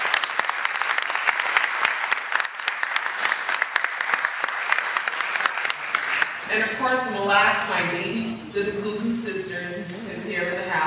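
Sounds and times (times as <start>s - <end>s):
audience applause: 0.0s - 6.5s
speech: 6.5s - 10.8s.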